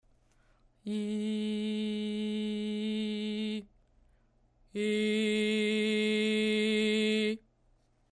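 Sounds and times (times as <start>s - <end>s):
person singing in head and chest voice: 0.8s - 3.7s, 4.7s - 7.4s.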